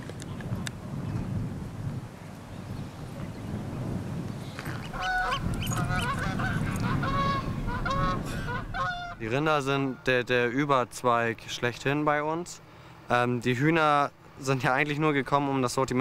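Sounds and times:
low rumbling noise outdoors: 0.0s - 9.7s
steady wind outdoors: 0.0s - 15.9s
flock of geese honking in a pasture: 4.6s - 10.0s
speech: 9.2s - 15.9s.

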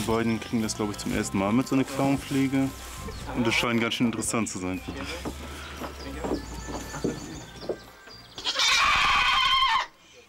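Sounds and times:
speech: 0.0s - 6.4s
goats bleating in protest: 8.4s - 9.9s.

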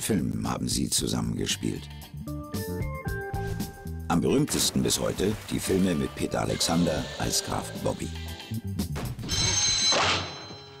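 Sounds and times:
speech: 0.0s - 2.9s, 4.1s - 8.7s
telephone bell ringing: 9.2s - 10.7s.

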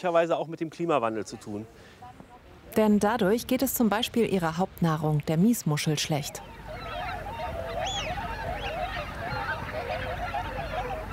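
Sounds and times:
speech: 0.0s - 2.0s, 2.8s - 6.6s
huge flock of wigeon ducks calling: 6.2s - 11.1s
roar of wigeon wingbeats: 6.4s - 11.1s.

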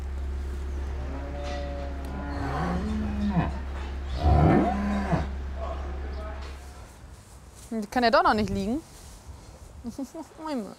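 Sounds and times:
low hum: 0.0s - 7.6s
cows in a barn at calving time mooing: 0.8s - 5.9s
speech: 7.8s - 8.9s, 9.8s - 10.7s.

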